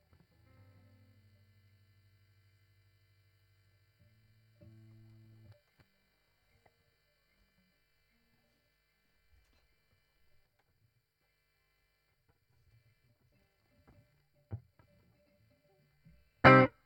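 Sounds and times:
guitar: 0.0 - 8.6, 12.7 - 16.8.

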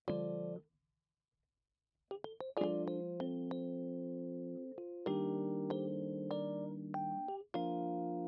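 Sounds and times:
Rhodes electric piano: 0.1 - 0.6, 2.2 - 8.2.

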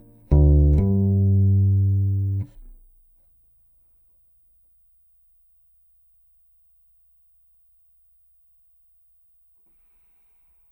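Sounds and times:
direct-input contrabass: 0.0 - 2.8.

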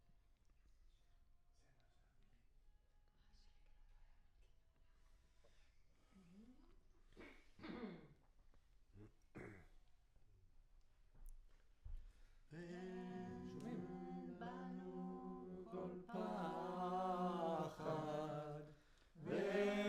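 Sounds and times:
choir singing: 12.6 - 19.8.

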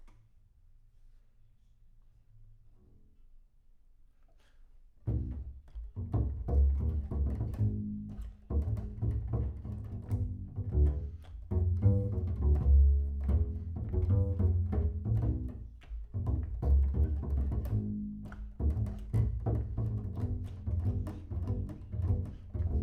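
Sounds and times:
bass sound: 6.0 - 22.8.

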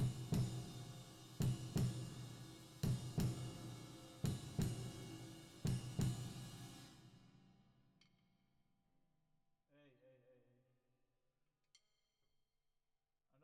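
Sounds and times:
drums with reverb: 0.0 - 7.6.

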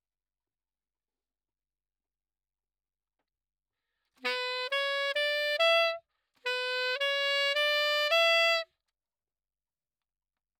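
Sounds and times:
saxophone: 4.2 - 8.8.

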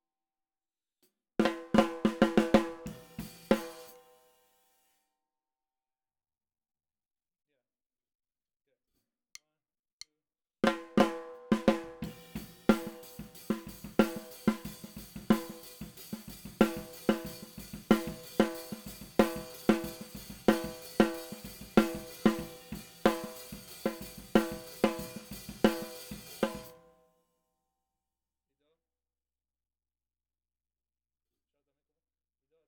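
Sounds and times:
snare drum: 1.4 - 4.2, 10.6 - 26.8.

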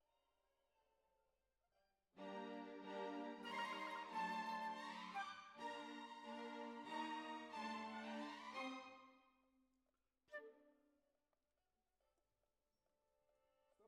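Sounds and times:
flute: 2.4 - 9.0, 10.3 - 10.8.

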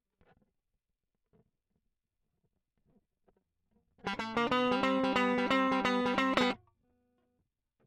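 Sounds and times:
guitar solo line: 4.1 - 6.6.

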